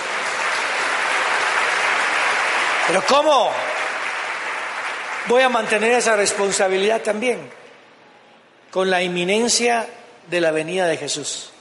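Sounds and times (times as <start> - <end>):
audience applauding: 0.0 - 6.8
speech: 2.9 - 3.8, 5.2 - 7.6, 8.7 - 11.5.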